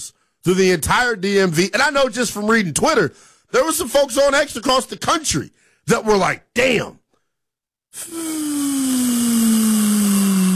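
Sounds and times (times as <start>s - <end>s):
speech: 0.0s - 7.0s, 7.9s - 8.8s
air rushing out of a balloon: 8.0s - 10.5s.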